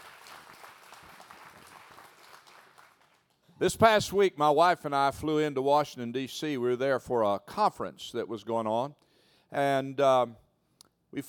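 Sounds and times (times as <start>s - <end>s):
audience applauding: 0.0s - 3.4s
speech: 3.6s - 10.4s.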